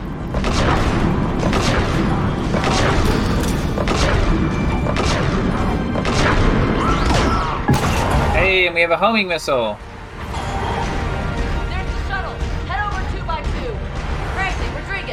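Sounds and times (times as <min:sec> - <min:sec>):
rumbling video game noise: 0:00.0 - 0:15.1
slow-firing gun in a video game: 0:00.2 - 0:08.4
speech: 0:08.7 - 0:09.9.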